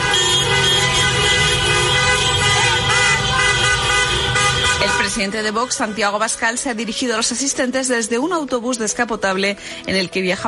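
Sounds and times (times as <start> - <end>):
chorus of car horns from a car caravan at a political rally in Madrid: 0.0 - 6.4
speech: 5.0 - 10.4.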